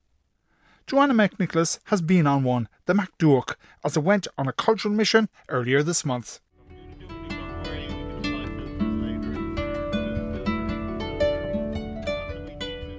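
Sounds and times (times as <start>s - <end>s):
speech: 0.9s - 6.4s
harp played on the deck of a Galway hooker sailing the Atlantic Ocean: 6.6s - 12.9s.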